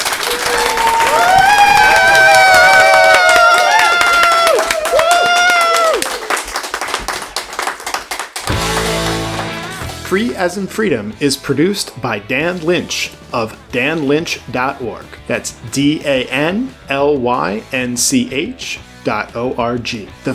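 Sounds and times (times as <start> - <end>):
live audience cheering: 0.0 - 7.2
live audience clapping: 0.0 - 10.1
speech: 10.1 - 20.3.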